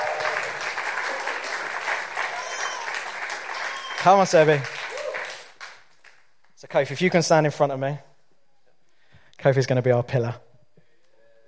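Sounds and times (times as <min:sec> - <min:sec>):
crowd applause: 0:00.0 - 0:06.2
speech: 0:04.0 - 0:04.8, 0:06.7 - 0:08.1, 0:09.4 - 0:10.5.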